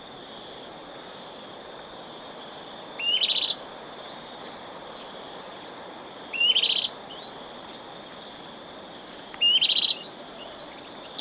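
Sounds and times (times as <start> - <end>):
olive-chested flycatcher calling: 3.0 - 5.2, 6.3 - 11.2.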